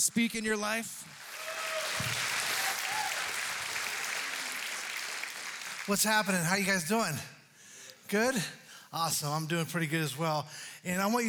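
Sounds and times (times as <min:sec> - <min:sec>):
speech: 0:00.0 - 0:01.2, 0:05.9 - 0:07.4, 0:08.1 - 0:11.2
church congregation applauding as the pastor is welcomed to the pulpit: 0:00.0 - 0:06.9.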